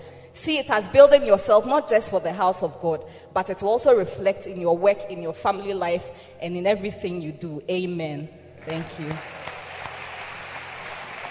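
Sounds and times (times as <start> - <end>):
speech: 0.4 - 9.4
crowd clapping: 8.6 - 11.2.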